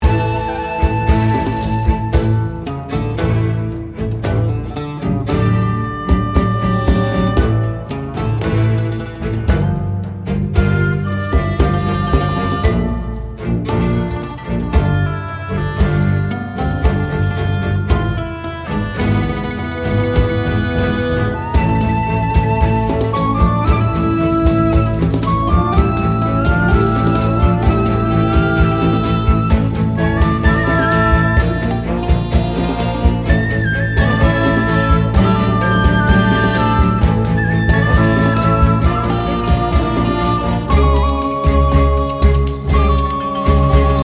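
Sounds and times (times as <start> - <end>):
backing music: 0.0 - 44.0.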